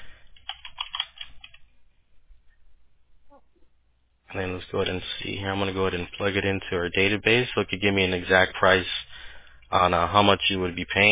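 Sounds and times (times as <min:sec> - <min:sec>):
typing on a computer keyboard entering details into an online form: 0:00.4 - 0:01.6
speech: 0:04.3 - 0:09.0, 0:09.7 - 0:11.0.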